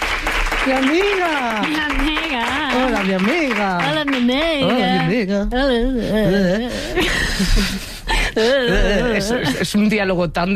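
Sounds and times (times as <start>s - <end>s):
applause: 0.0s - 5.0s
speech: 0.7s - 10.5s
laughter: 6.3s - 9.8s.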